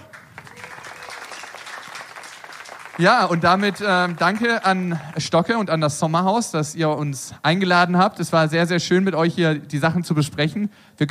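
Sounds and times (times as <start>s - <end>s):
audience applause: 0.0s - 5.7s
speech: 3.0s - 11.0s.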